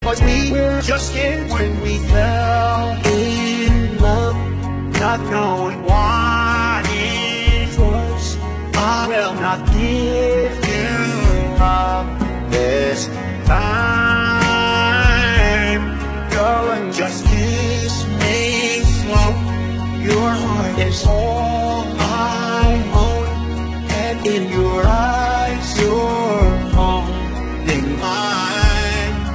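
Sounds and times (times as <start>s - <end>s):
person singing: 0.0s - 29.3s.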